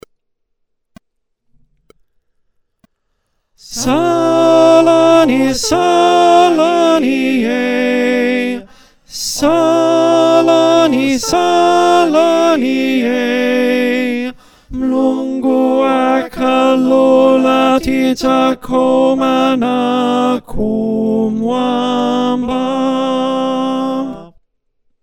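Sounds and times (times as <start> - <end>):
alto choir singing: 3.6 - 24.4.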